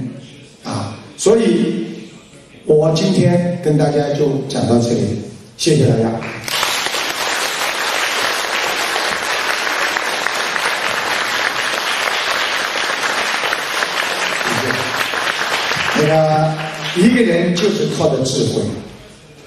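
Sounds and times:
speech: 0:01.2 - 0:01.9, 0:02.7 - 0:06.5, 0:17.0 - 0:18.9
audience applause: 0:06.4 - 0:17.6.

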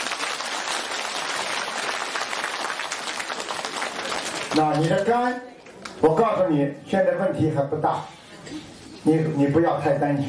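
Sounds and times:
applause: 0:00.0 - 0:05.1
speech: 0:04.5 - 0:10.2.

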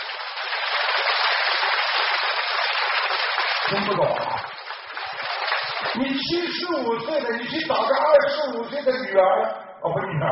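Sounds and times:
audience applause: 0:00.0 - 0:06.6
speech: 0:03.7 - 0:04.4, 0:06.3 - 0:10.3.

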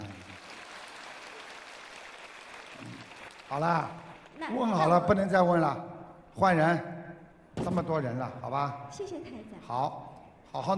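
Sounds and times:
audience clapping: 0:00.0 - 0:05.0
speech: 0:03.5 - 0:06.9, 0:07.6 - 0:10.7.

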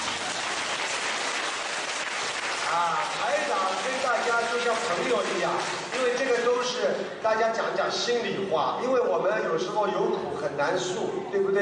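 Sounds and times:
audience applause at a live event: 0:00.0 - 0:06.6
speech: 0:02.7 - 0:11.6.

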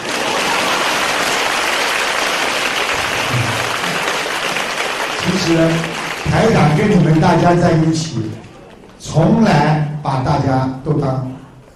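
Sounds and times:
large audience applauding: 0:00.0 - 0:07.9
speech: 0:05.3 - 0:08.4, 0:09.0 - 0:11.3.

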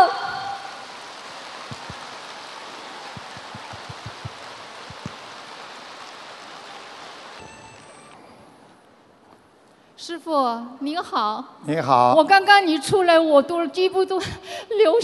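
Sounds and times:
warm audience applause: 0:00.6 - 0:08.2
speech: 0:10.1 - 0:15.0.

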